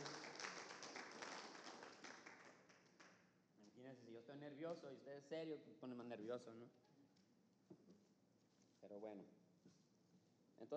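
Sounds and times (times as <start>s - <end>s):
audience applauding: 0.0s - 3.2s
speech: 3.8s - 6.9s, 8.9s - 9.8s, 10.6s - 10.7s.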